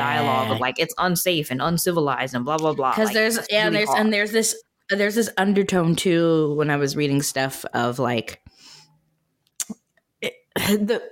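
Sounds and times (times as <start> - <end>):
small burp from a person: 0.0 - 0.7, 3.6 - 4.1, 10.2 - 11.0
speech: 0.0 - 8.5, 9.7 - 11.0.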